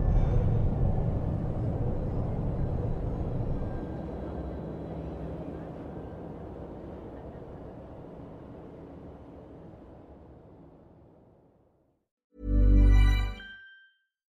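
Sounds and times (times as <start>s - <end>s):
low vehicle-like rumble: 0.0s - 11.4s.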